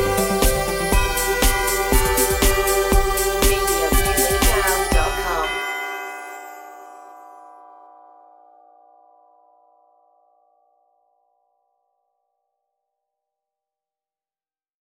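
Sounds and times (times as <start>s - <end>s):
synthesized folk tune melody: 0.0s - 6.4s.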